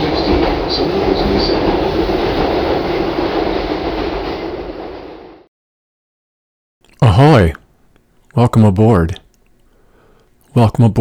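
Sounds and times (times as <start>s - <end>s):
train running on rails: 0.0s - 5.5s, 7.0s - 7.7s
speech: 7.4s - 7.6s, 8.4s - 9.2s, 10.6s - 10.9s.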